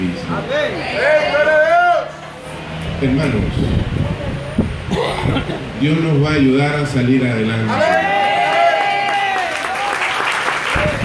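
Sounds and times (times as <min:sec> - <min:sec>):
speech: 0:00.3 - 0:01.4, 0:03.0 - 0:08.1
church congregation applauding during a service: 0:07.7 - 0:11.0.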